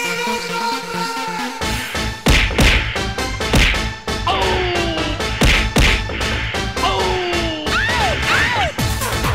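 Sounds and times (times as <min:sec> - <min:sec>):
fighting video game theme music: 0:00.0 - 0:09.3.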